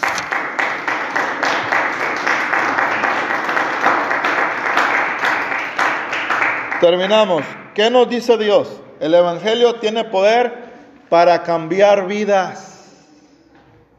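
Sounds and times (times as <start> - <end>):
audience applause: 0.0 - 7.0
speech: 6.8 - 12.7.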